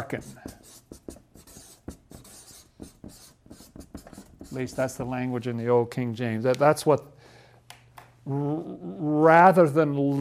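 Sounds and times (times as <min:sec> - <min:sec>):
pen writing words in purple ink: 0:00.0 - 0:05.0
speech: 0:00.1 - 0:00.6, 0:04.5 - 0:07.1, 0:08.3 - 0:10.1.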